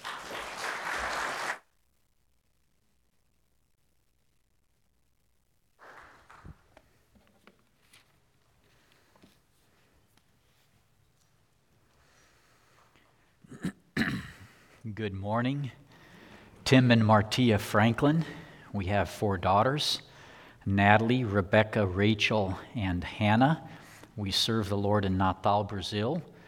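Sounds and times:
church congregation applauding a welcome for a missionary family: 0.0s - 1.7s, 5.8s - 6.8s
speech: 14.9s - 15.8s, 16.7s - 26.3s.

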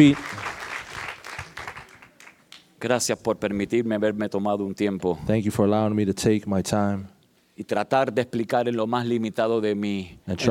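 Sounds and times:
speech: 0.0s - 0.4s, 2.8s - 10.4s
audience hand clapping applause: 0.0s - 2.7s.

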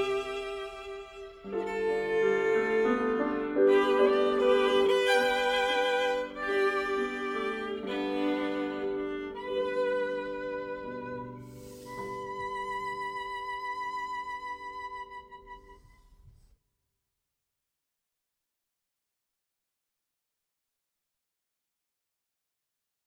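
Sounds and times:
piano: 0.0s - 16.4s
violin: 0.0s - 16.5s.

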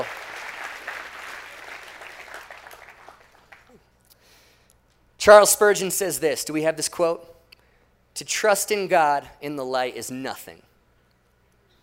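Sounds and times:
audience applause: 0.0s - 3.8s
speech: 5.2s - 7.3s, 8.2s - 10.7s.

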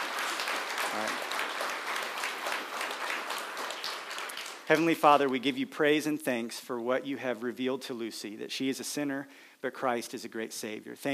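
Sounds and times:
audience clapping after baptism: 0.0s - 5.6s
speech: 0.9s - 1.2s, 4.7s - 11.1s.

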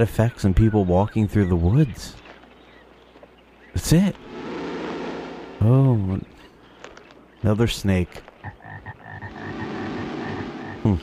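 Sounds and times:
speech: 0.0s - 2.2s, 3.8s - 4.3s, 5.6s - 6.4s, 7.4s - 8.3s
frog croaking in the woods: 8.4s - 11.0s.

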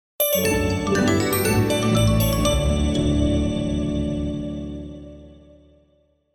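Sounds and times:
fanfare: 0.2s - 3.6s.

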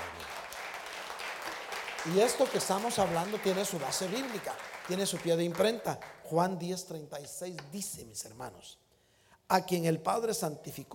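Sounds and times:
crowd applauding: 0.0s - 6.4s
speech: 2.0s - 8.8s, 9.5s - 10.9s.

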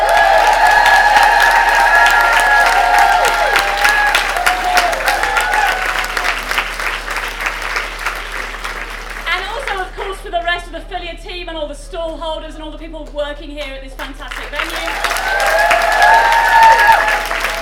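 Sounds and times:
audience cheers and whoops: 0.0s - 6.6s, 14.7s - 17.6s
audience applause: 0.0s - 10.0s, 14.3s - 17.6s.

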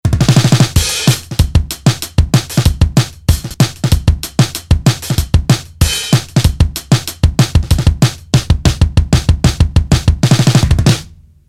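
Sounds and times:
lo-fi beat: 0.1s - 11.3s.

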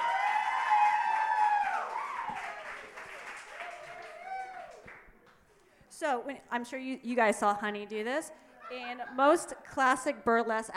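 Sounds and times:
people cheering and whooping: 0.0s - 4.9s
audience clapping: 0.0s - 5.4s
speech: 6.0s - 10.7s.

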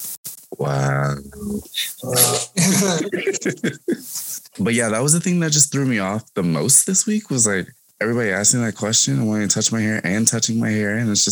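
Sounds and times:
person imitating a dog's snore: 0.5s - 3.2s
speech: 0.5s - 11.2s
laughter: 2.0s - 5.2s.

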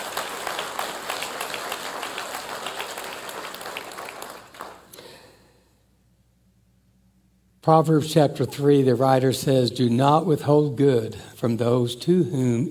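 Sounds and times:
audience applause: 0.0s - 4.9s
speech: 7.6s - 12.6s.

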